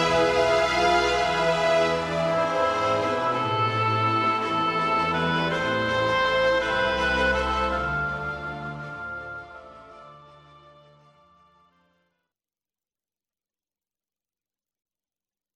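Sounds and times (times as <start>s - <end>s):
music: 0.0s - 12.3s.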